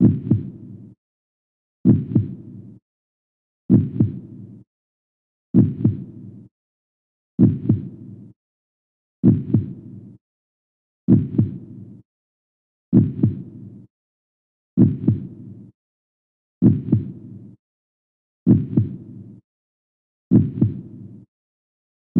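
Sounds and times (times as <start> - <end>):
heartbeat: 0.0 - 0.6, 1.8 - 2.4, 3.7 - 4.2, 5.6 - 6.1, 7.4 - 8.0, 9.2 - 9.8, 11.1 - 11.7, 12.9 - 13.5, 14.8 - 15.3, 16.6 - 17.2, 18.5 - 19.0, 20.3 - 21.0.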